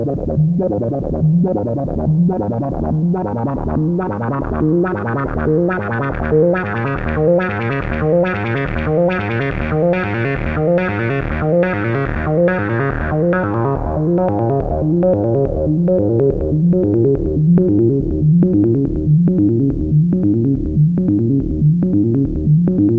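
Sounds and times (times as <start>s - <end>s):
analog synth ten step sequencer pattern: 0.0s - 22.9s.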